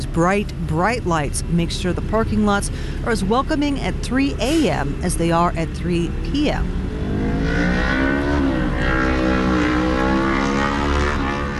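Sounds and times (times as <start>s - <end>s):
cars driving into a parking lot: 0.0s - 11.5s
speech: 0.2s - 8.0s.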